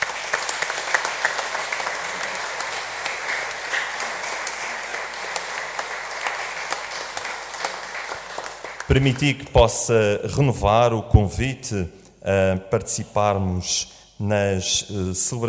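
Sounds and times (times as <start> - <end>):
applause: 0.0 - 9.5
speech: 8.9 - 15.4.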